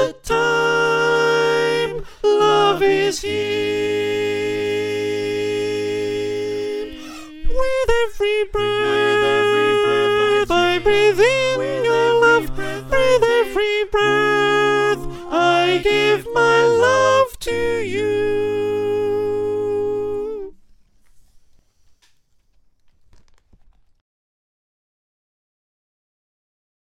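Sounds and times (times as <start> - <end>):
choir with soprano: 0.0 - 20.6.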